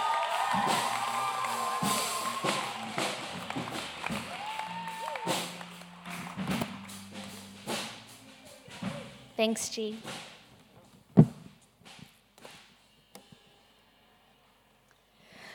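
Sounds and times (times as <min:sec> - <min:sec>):
whistles: 0:00.0 - 0:06.4
cheers: 0:00.0 - 0:06.9
audience applause: 0:00.0 - 0:07.9
speech: 0:09.4 - 0:10.2.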